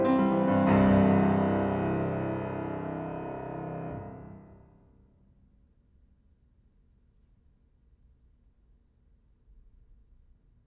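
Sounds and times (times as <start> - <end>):
piano etude in C major: 0.0 - 4.9.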